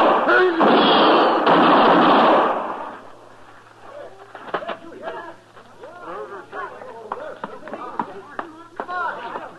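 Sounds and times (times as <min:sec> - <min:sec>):
gunshots in a radio western drama gunfight: 0:00.0 - 0:03.0
men talking: 0:03.8 - 0:09.5.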